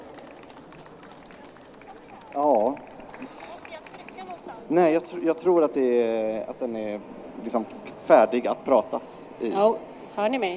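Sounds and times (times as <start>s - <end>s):
audience applause: 0.0s - 4.6s
speech: 4.7s - 10.5s.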